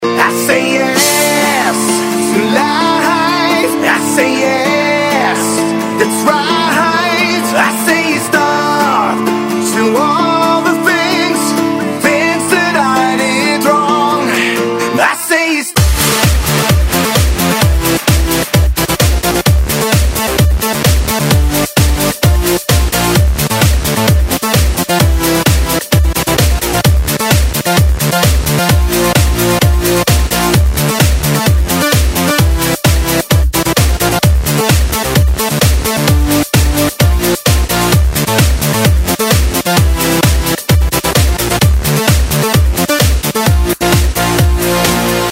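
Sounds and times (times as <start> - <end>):
big room remix: 0.0 - 45.3.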